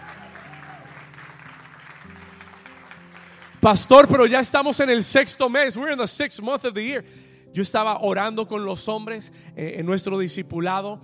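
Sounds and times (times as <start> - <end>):
audience applause: 0.0 - 4.1
speech: 3.6 - 11.0.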